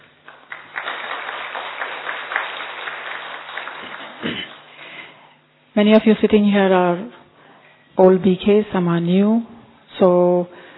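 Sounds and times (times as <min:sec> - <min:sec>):
audience applause: 0:00.0 - 0:05.0
speech: 0:05.8 - 0:07.2, 0:08.0 - 0:10.6.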